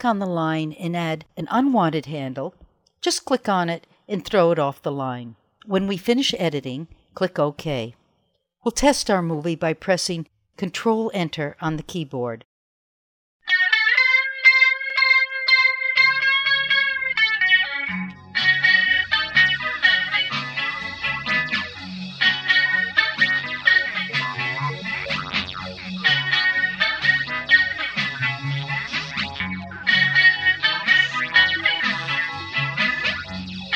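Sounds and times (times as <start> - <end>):
speech: 0.0 - 8.0, 8.6 - 12.5
bright sustained synth-like melody: 14.2 - 33.7
driving beat with bass and distorted tones: 18.1 - 33.7.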